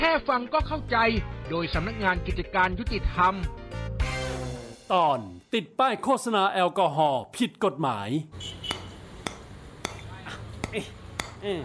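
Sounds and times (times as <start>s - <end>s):
speech: 0.0s - 3.6s, 4.9s - 8.6s, 10.7s - 11.6s
hammering: 8.7s - 11.6s.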